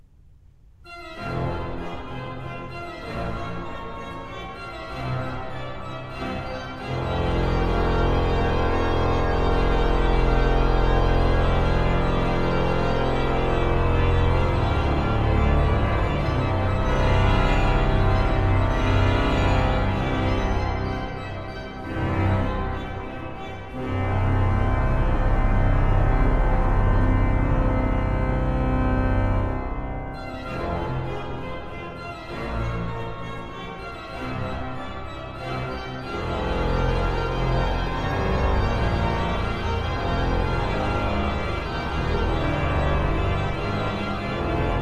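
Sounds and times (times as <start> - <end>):
organ playing: 1.0 - 44.8.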